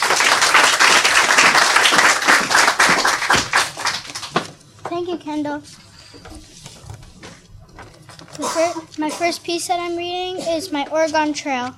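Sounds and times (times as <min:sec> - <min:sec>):
audience clapping: 0:00.0 - 0:04.6
speech: 0:05.0 - 0:06.6, 0:08.4 - 0:11.7.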